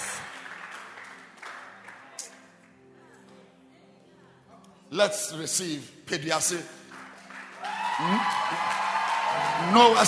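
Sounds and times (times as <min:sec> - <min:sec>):
audience clapping hands in a large room: 0:00.0 - 0:02.4, 0:06.8 - 0:10.0
speech: 0:04.9 - 0:06.8, 0:08.0 - 0:08.7, 0:09.6 - 0:10.0.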